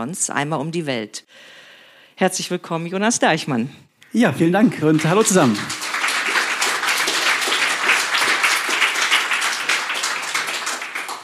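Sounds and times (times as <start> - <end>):
speech: 0.0 - 1.6, 2.2 - 5.8
festival audience applause: 4.6 - 11.2.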